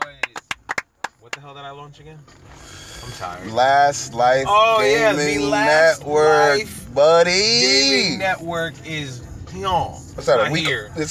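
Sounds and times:
applause: 0.0 - 1.3
speech: 1.4 - 11.1.

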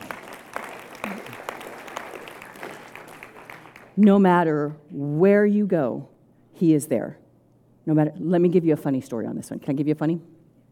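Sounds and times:
audience applause: 0.0 - 4.0
speech: 4.0 - 7.2, 7.9 - 10.3.

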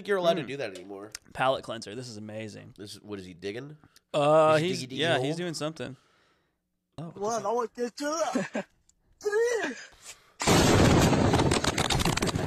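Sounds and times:
speech: 0.0 - 6.1, 7.0 - 9.9
bomb explosion in played video footage: 10.4 - 12.4.

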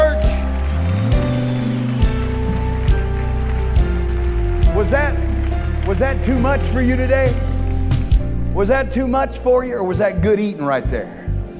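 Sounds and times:
audience clapping hands: 0.0 - 8.2
speech: 5.9 - 7.5, 8.6 - 11.2.

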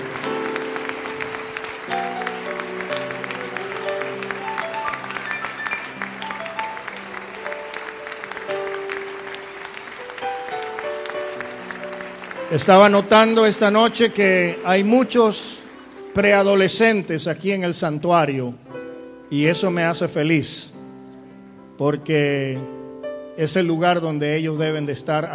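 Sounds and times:
audience applauding loudly: 0.0 - 17.2
speech: 12.6 - 15.6, 16.2 - 18.6, 19.3 - 20.7, 21.8 - 22.8, 23.4 - 25.3.

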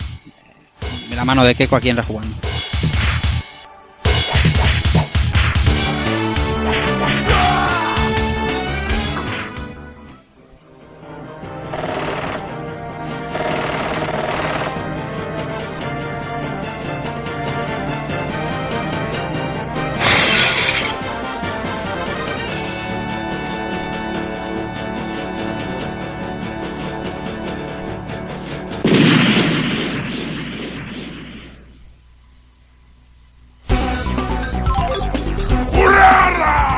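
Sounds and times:
dense orchestral video game intro music: 0.0 - 30.2, 33.6 - 36.7
speech: 1.1 - 2.5
booming explosions: 28.8 - 31.8
loud crashing impacts: 28.8 - 31.8.

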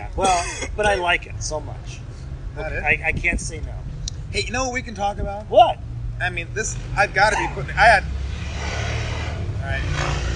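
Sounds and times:
speech: 0.2 - 2.0, 2.6 - 8.8, 9.6 - 10.3
motorcycle riding by: 7.5 - 10.3.

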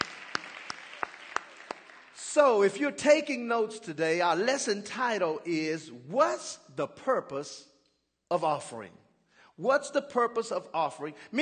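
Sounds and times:
audience hand clapping: 0.0 - 2.6
speech: 2.3 - 7.7, 8.3 - 9.0, 9.6 - 11.3.

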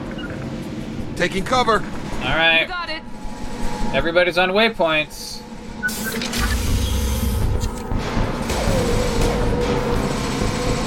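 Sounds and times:
speech: 1.2 - 3.1, 3.9 - 6.2
heavy motorized loading bay doors grinding open: 5.4 - 10.8.

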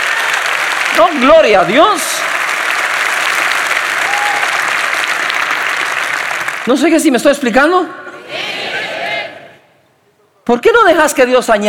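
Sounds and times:
audience applauding: 0.0 - 7.1
speech: 1.0 - 2.4, 6.6 - 8.0, 10.5 - 11.6.

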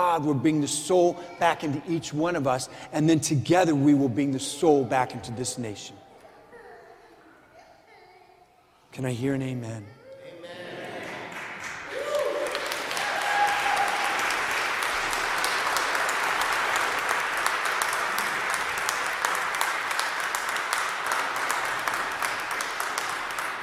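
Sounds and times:
speech: 0.2 - 6.0, 8.9 - 10.6
audience applauding: 10.9 - 23.6.

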